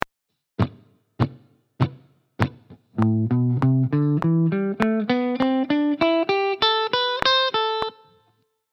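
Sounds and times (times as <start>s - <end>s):
blues guitar: 0.6s - 8.2s.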